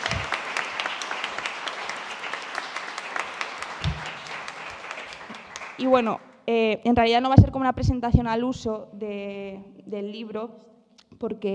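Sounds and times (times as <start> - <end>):
audience applause: 0.0 - 6.2
speech: 5.8 - 11.5.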